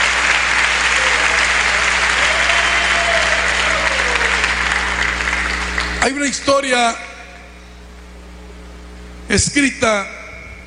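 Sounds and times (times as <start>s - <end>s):
audience applause: 0.0s - 6.2s
speech: 6.0s - 7.1s, 9.3s - 10.2s.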